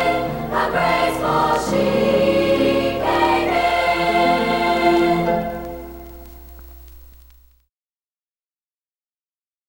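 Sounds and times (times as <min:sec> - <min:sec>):
chorus singing a Spanish ballad: 0:00.0 - 0:06.0.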